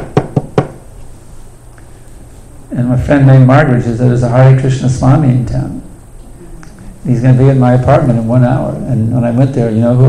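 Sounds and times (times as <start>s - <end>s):
knocks on a door: 0.0s - 0.8s
speech: 2.7s - 5.9s, 7.0s - 10.0s.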